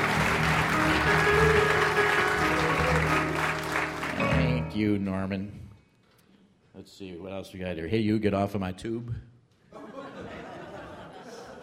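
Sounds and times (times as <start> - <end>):
audience applause: 0.0 - 4.4
speech: 4.8 - 5.6, 6.8 - 9.3
laughter: 9.7 - 11.6.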